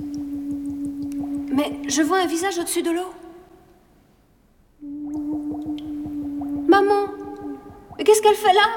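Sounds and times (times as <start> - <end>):
bubbles blown through a tube underwater: 0.0 - 2.5, 4.8 - 8.4
low humming tone: 0.0 - 2.8, 4.8 - 8.4
speech: 1.6 - 3.2, 8.2 - 8.7.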